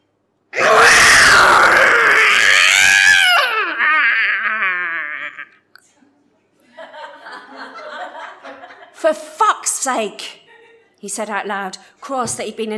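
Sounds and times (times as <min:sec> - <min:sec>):
cats yowling while mating: 0:00.6 - 0:05.5
laughter: 0:06.6 - 0:09.0, 0:10.4 - 0:11.0
speech: 0:09.8 - 0:10.4, 0:11.0 - 0:12.7.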